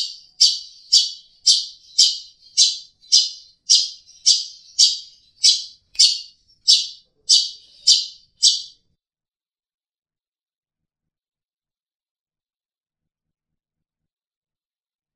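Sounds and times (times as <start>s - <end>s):
long-tailed shrike trilling: 0.0s - 8.8s.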